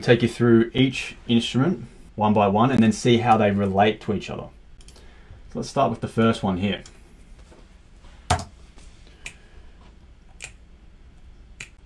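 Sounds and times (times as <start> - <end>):
speech: 0.0 - 4.6, 5.5 - 7.0
finger snaps recorded into a mic: 9.2 - 9.4, 10.4 - 10.6, 11.6 - 11.8.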